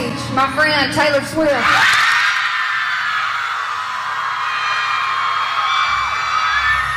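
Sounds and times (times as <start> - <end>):
speech: 0.4 - 2.0
huge concert crowd cheering and screaming: 1.6 - 6.9.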